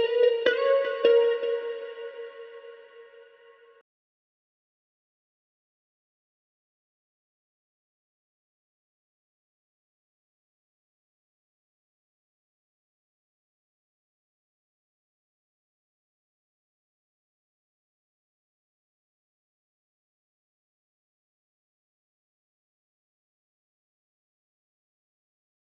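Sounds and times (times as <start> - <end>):
guitar lead melody: 0.0 - 3.5.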